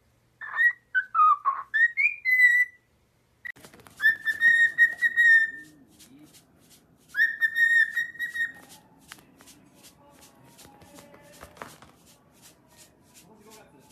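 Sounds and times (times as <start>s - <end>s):
cockatiel whistled song: 0.4s - 2.8s, 3.9s - 5.8s, 7.1s - 8.8s
soft rustling: 3.5s - 13.9s.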